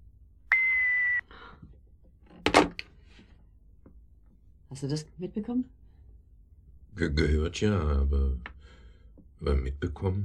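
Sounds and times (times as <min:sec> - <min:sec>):
electronic answering machine beep: 0:00.5 - 0:01.2
speech: 0:04.7 - 0:05.8, 0:07.0 - 0:08.6, 0:09.4 - 0:10.2.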